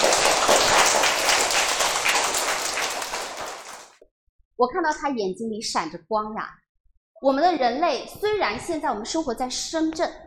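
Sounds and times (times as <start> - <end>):
audience applause: 0.0 - 4.0
speech: 4.6 - 6.6, 7.2 - 10.2.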